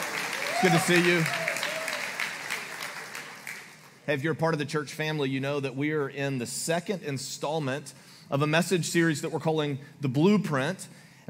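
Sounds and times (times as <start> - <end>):
church audience applauding: 0.0 - 4.0
speech: 0.6 - 1.4, 4.1 - 11.2.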